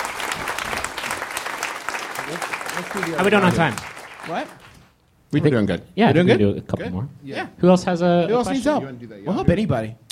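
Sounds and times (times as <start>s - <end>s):
audience clapping: 0.0s - 5.0s
speech: 2.3s - 4.6s, 5.3s - 10.0s.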